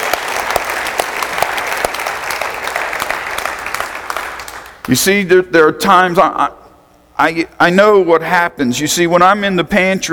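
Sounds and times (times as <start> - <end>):
audience hand clapping in praise: 0.0 - 5.0
speech: 4.9 - 6.6, 7.2 - 10.1.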